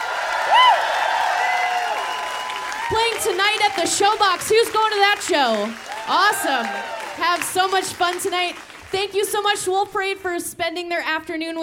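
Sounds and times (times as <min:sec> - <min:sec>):
live audience applause and cheering: 0:00.0 - 0:09.6
speech: 0:02.9 - 0:11.6.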